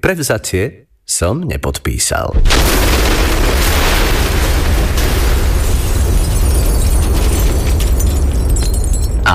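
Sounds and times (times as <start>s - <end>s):
speech: 0.0s - 4.1s
explosive blast blowing up a statue: 2.4s - 8.6s
crackling debris: 2.4s - 9.3s.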